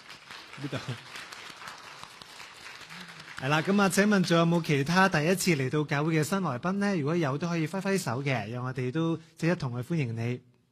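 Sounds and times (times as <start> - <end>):
audience applauding in welcome: 0.0 - 4.8
speech: 0.6 - 1.3, 3.4 - 10.5.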